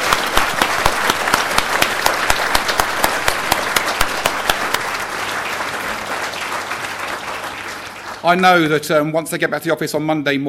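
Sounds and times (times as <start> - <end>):
audience applauding: 0.0 - 8.8
speech: 8.2 - 10.4.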